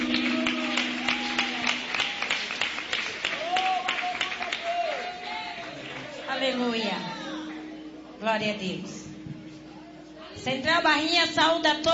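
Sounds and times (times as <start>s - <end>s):
audience applause: 0.0s - 6.3s
speech: 8.3s - 9.0s, 10.4s - 11.9s.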